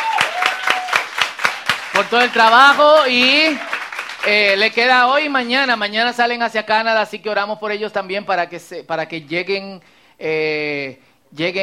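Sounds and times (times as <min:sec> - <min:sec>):
applause: 0:00.0 - 0:05.4
speech: 0:02.0 - 0:11.6.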